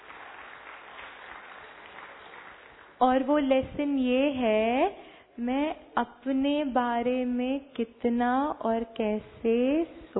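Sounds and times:
audience applause: 0.0s - 3.0s
speech: 3.0s - 10.1s.

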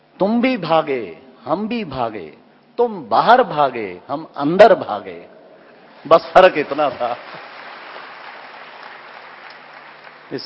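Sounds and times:
speech: 0.2s - 5.4s, 6.0s - 7.5s
audience applause: 6.3s - 10.4s.

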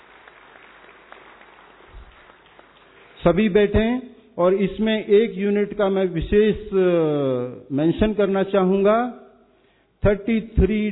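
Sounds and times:
applause from an audience standing at an army function: 0.0s - 3.2s
speech: 3.2s - 9.2s, 10.0s - 10.9s.

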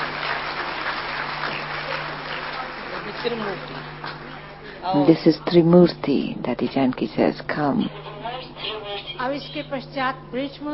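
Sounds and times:
audience clapping: 0.0s - 4.4s
speech: 3.2s - 3.9s, 4.8s - 10.7s.

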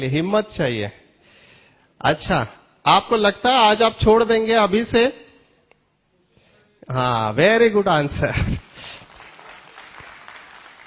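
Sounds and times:
speech: 0.0s - 1.0s, 2.0s - 5.2s, 6.9s - 8.6s
audience clapping at a talk: 8.6s - 10.8s.

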